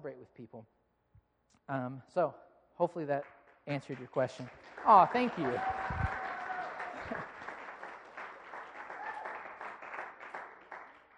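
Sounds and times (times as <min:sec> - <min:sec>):
speech: 0:00.0 - 0:00.8, 0:01.7 - 0:06.1
applause: 0:03.2 - 0:11.1.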